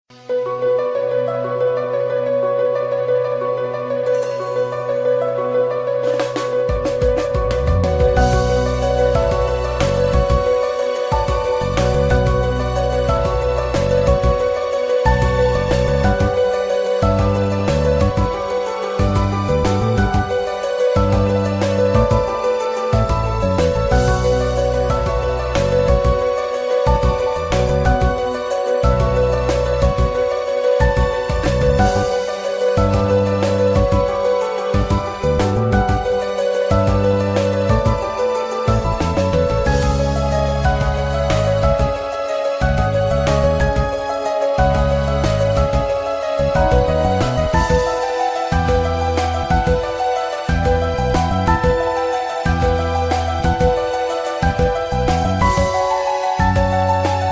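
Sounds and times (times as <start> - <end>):
fast music piece: 0.1 - 57.3.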